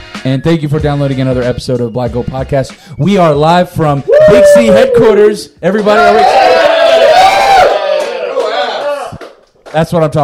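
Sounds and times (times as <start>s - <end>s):
speech: 0.2s - 6.4s, 9.7s - 10.2s
live crowd cheering and whooping: 4.1s - 5.3s, 5.9s - 9.2s.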